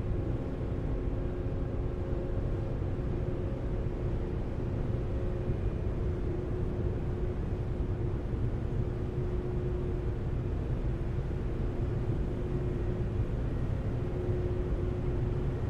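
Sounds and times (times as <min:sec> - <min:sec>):
engine and machinery rumble on Seattle-Bainbridge Island Ferry rear car deck: 0:00.0 - 0:15.6
faint higher hum: 0:00.0 - 0:15.6.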